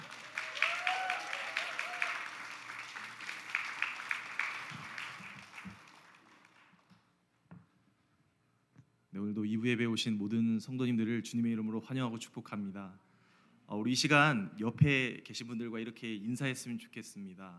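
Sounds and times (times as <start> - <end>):
audience applauding in welcome: 0.0 - 6.9
speech: 9.3 - 13.1, 13.7 - 17.5.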